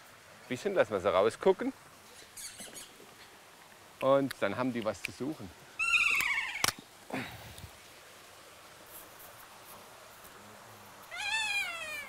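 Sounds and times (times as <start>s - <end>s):
hiss: 0.0s - 12.0s
speech: 0.5s - 1.9s, 4.0s - 5.6s, 7.1s - 7.4s
Kea parrots screeching: 2.2s - 3.0s, 5.8s - 6.8s, 11.1s - 12.0s.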